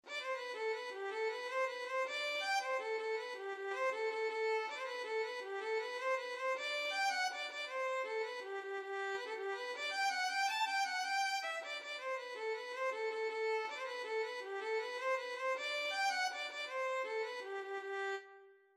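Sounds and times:
violin: 0.0s - 18.7s.

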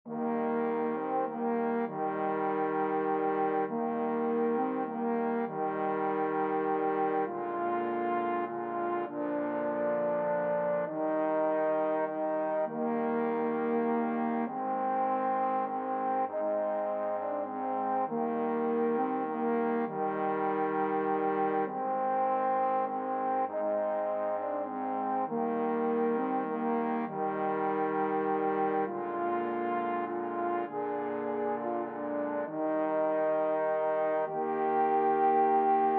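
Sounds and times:
trombone quartet: 0.1s - 35.9s.

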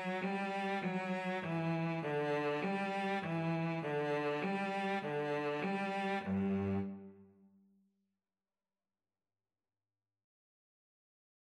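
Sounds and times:
violin and cello duet playing an anthem: 0.0s - 7.2s.

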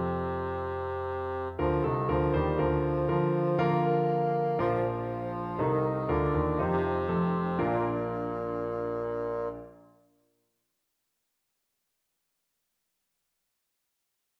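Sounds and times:
bassoon: 0.0s - 10.0s.

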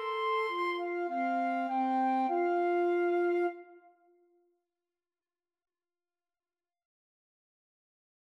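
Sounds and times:
flute playing in a duet: 0.0s - 4.0s.

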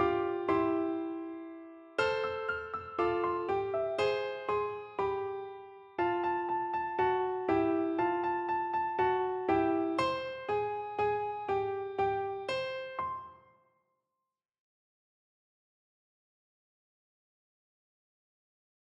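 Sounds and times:
piano duet: 0.0s - 13.5s.

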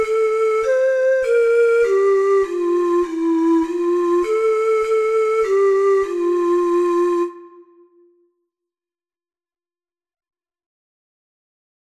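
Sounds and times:
four-hole ocarina melody: 0.0s - 8.2s.

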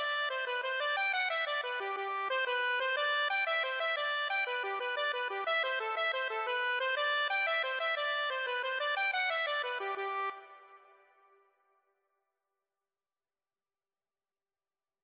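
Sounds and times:
accordion: 0.0s - 11.1s.

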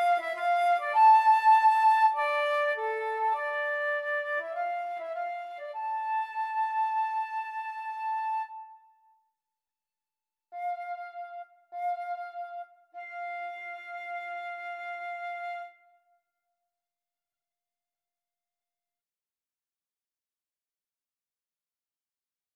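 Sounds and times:
flute duet: 0.0s - 9.0s, 10.6s - 16.0s.

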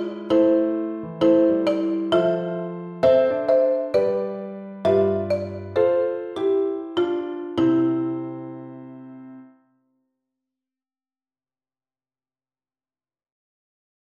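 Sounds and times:
marimba: 0.0s - 8.6s.

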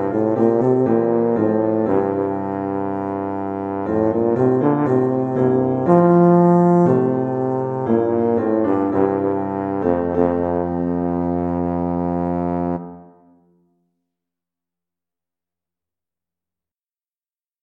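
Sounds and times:
tuba: 0.0s - 13.6s.

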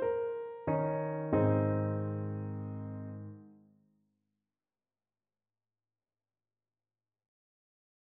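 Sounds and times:
piano piece: 0.0s - 3.5s.

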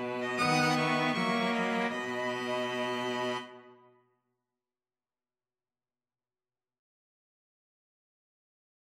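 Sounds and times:
violin and cello duet: 0.0s - 3.7s.

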